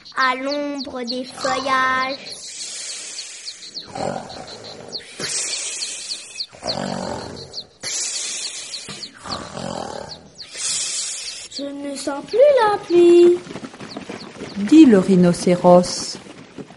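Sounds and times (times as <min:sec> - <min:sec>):
speech: 0:00.1 - 0:02.6, 0:03.8 - 0:05.4, 0:06.6 - 0:07.6, 0:11.6 - 0:13.6, 0:14.6 - 0:16.2
lion growling: 0:01.2 - 0:02.4, 0:03.8 - 0:08.0, 0:08.9 - 0:10.9.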